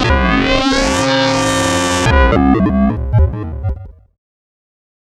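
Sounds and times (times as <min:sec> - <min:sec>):
Moog modular synthesizer: 0:00.1 - 0:04.0.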